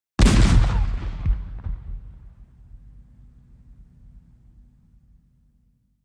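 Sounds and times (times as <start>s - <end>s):
Civil War cannon shot: 0.2s - 3.0s.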